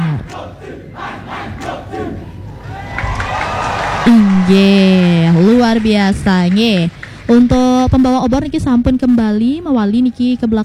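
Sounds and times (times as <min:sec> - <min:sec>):
audience cheering for Gianyar Regency performers at a stage show: 0:00.2 - 0:05.7
speech: 0:04.1 - 0:10.6.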